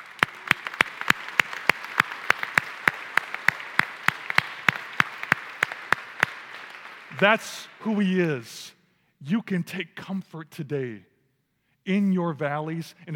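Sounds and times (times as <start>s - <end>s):
audience clapping: 0.0s - 8.4s
speech: 7.2s - 11.1s, 11.9s - 13.1s.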